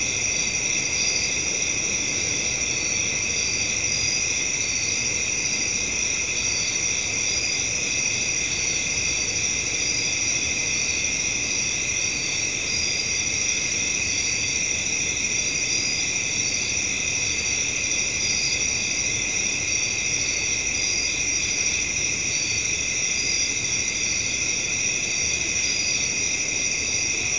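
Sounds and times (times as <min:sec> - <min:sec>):
crickets trilling at night: 0:00.0 - 0:27.3.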